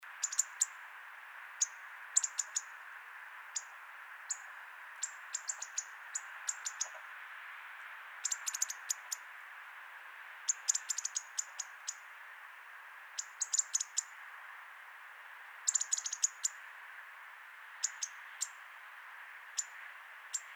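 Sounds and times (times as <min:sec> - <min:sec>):
low background hiss: 0:00.0 - 0:20.5
European robin ticking calls: 0:00.2 - 0:00.8, 0:01.6 - 0:02.8, 0:03.6 - 0:07.0, 0:08.2 - 0:09.2, 0:10.5 - 0:12.0, 0:13.2 - 0:14.1, 0:15.7 - 0:16.6, 0:17.8 - 0:18.6.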